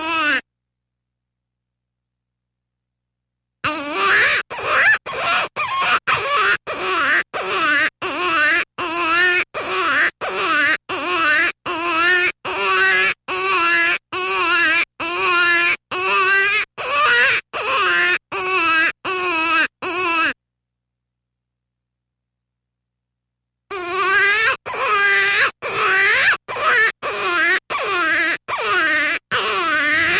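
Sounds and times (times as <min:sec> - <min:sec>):
jackrabbit distress call: 0:03.6 - 0:20.4, 0:23.7 - 0:30.1.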